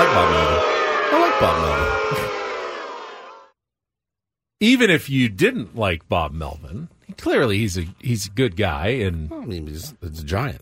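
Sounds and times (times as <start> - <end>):
speech: 0.0 - 0.8, 1.4 - 2.5, 4.6 - 10.6
people yelling: 0.0 - 3.5
stadium crowd booing: 0.0 - 3.5.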